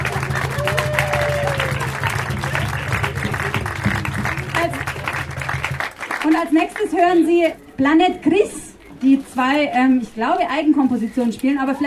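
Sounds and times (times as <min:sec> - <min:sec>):
audience applause: 0:00.0 - 0:06.6
speech: 0:06.5 - 0:11.8.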